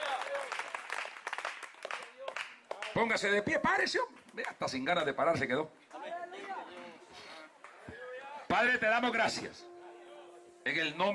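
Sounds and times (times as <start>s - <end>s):
audience applause: 0.0s - 3.0s
speech: 3.0s - 5.8s, 8.5s - 9.7s, 10.6s - 11.1s.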